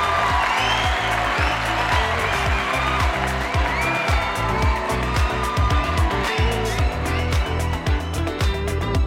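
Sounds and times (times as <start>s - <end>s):
audience applause: 0.0s - 8.9s.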